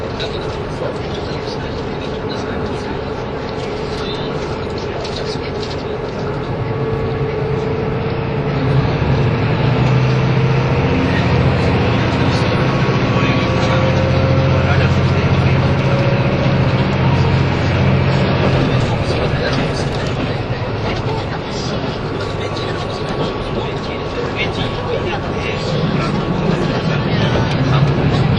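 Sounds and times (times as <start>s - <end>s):
low train engine drone: 0.0s - 28.3s
murmuring voices: 0.0s - 28.3s
train running between Nagoya and Toyama: 0.0s - 28.3s.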